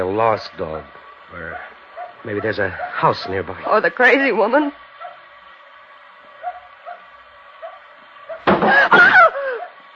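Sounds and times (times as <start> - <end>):
speech: 0.0 - 4.8
something hitting the back of a car: 8.5 - 8.9
laughter: 8.5 - 9.7.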